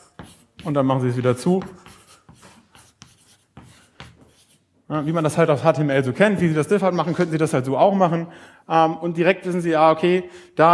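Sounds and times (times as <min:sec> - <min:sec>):
writing on a board: 0:00.0 - 0:05.4
speech: 0:00.6 - 0:01.8, 0:04.9 - 0:10.7.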